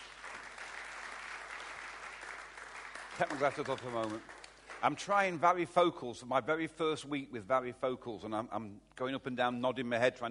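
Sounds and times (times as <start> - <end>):
round of applause: 0.0 - 5.4
speech: 3.2 - 10.3.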